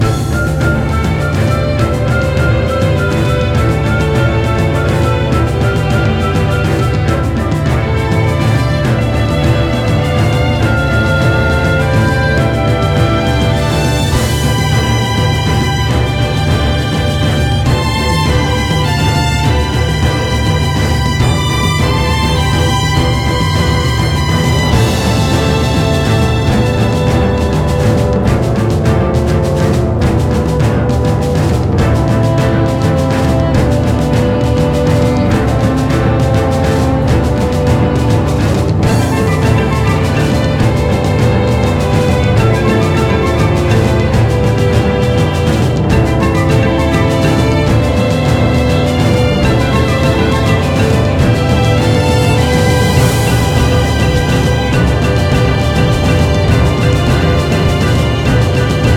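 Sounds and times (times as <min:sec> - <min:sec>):
battle music loop: 0:00.0 - 0:58.9.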